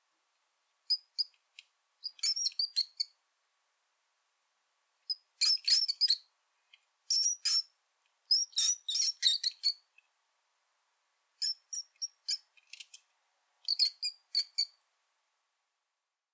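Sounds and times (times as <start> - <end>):
mouse squeaks: 0.9 - 1.3, 2.0 - 3.2, 5.1 - 6.3, 7.1 - 7.7, 8.3 - 9.9, 11.4 - 13.0, 13.6 - 14.8.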